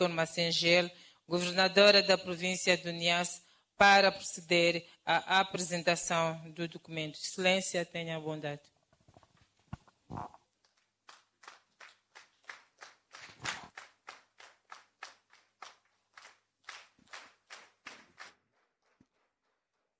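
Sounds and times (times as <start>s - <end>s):
speech: 0.0s - 8.7s, 10.1s - 10.4s
assembly members applauding: 10.6s - 19.4s.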